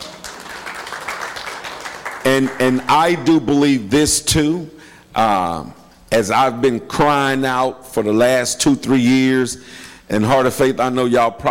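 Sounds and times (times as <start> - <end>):
audience clapping: 0.0 - 3.2
speech: 2.3 - 11.4.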